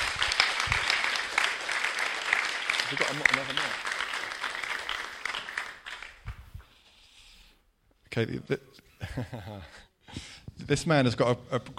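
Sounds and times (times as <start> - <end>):
audience applause: 0.0 - 6.3
speech: 2.9 - 3.9, 8.2 - 11.7.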